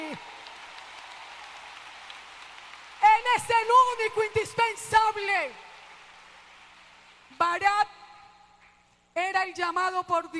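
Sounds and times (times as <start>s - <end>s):
crowd applauding: 0.0s - 7.4s
speech: 3.3s - 5.6s, 7.4s - 8.0s, 9.2s - 10.3s.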